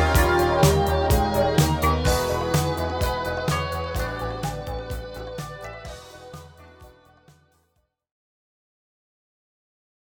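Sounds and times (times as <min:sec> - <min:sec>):
metal bass: 0:00.0 - 0:07.2.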